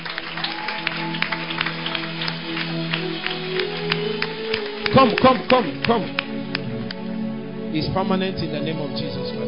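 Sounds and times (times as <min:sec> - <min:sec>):
audience clapping: 0:00.0 - 0:07.2
speech: 0:05.0 - 0:06.2, 0:07.7 - 0:09.3.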